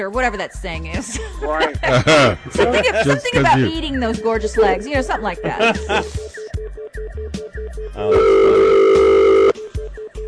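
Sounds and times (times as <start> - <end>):
speech: 0.0 - 6.2, 8.0 - 8.6
laughter: 0.9 - 3.8, 5.3 - 6.4
telephone line rapid electronic beeps: 8.1 - 9.6.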